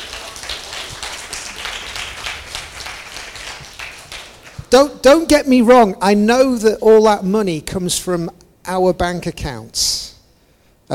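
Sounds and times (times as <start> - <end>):
audience applause: 0.0 - 4.7
speech: 4.7 - 10.0.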